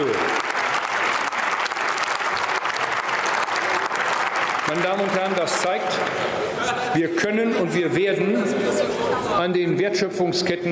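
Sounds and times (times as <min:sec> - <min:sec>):
applause in parliament: 0:00.0 - 0:06.2
speech: 0:04.7 - 0:10.6.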